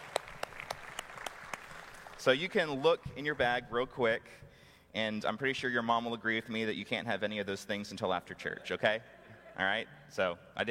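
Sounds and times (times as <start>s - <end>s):
hand claps: 0.0s - 2.2s
speech: 2.2s - 10.7s.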